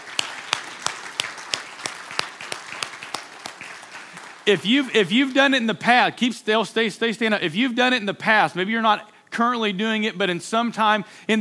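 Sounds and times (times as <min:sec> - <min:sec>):
audience applause: 0:00.0 - 0:04.6
speech: 0:04.5 - 0:11.3.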